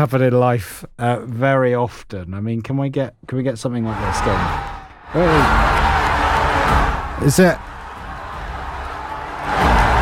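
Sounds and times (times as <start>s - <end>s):
speech: 0.0s - 5.9s, 7.2s - 7.7s
crowd cheering: 3.8s - 10.0s.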